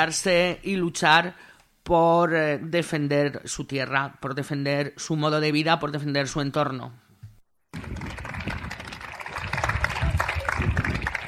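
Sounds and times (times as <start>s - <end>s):
speech: 0.0s - 7.0s
crowd applauding outside a courthouse: 7.7s - 11.2s.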